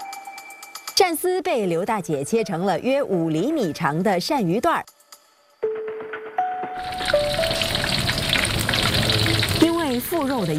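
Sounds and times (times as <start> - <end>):
speech: 1.0 - 5.0, 10.1 - 10.5
eel belly meat frying in oil: 6.8 - 10.5.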